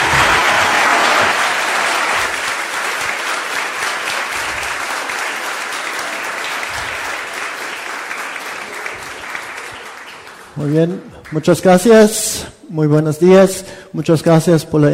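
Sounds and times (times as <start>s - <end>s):
audience applause welcoming a speaker: 0.0s - 11.7s
speech: 10.6s - 14.9s.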